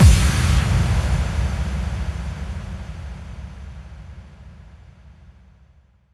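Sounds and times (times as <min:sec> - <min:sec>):
bass drum FX kicks: 0:00.0 - 0:04.6.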